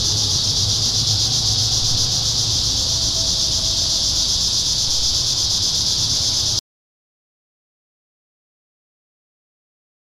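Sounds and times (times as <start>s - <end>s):
cicadas buzzing in town: 0.0s - 6.6s.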